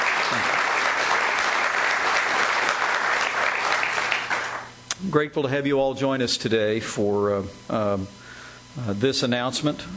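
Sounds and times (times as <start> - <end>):
audience applause: 0.0 - 4.7
speech: 5.1 - 8.2, 8.8 - 9.9.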